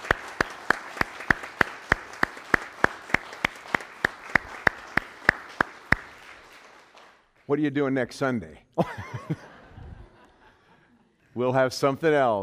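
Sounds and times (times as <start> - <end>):
hand clapping after a musical performance: 0.0 - 7.5
speech: 7.5 - 9.4, 11.4 - 12.4
laughter: 8.8 - 11.2.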